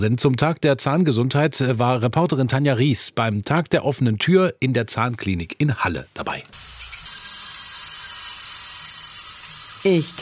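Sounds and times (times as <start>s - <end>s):
speech: 0.0s - 6.8s, 9.8s - 10.2s
dental drill whirring: 6.5s - 10.2s.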